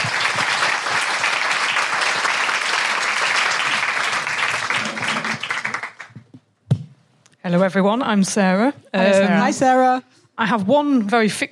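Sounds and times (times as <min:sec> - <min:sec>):
audience applause: 0:00.0 - 0:06.2
speech: 0:07.5 - 0:11.5.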